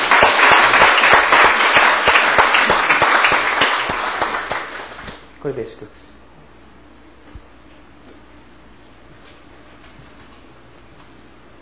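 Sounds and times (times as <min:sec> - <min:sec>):
audience applause: 0:00.0 - 0:05.3
speech: 0:05.4 - 0:06.1.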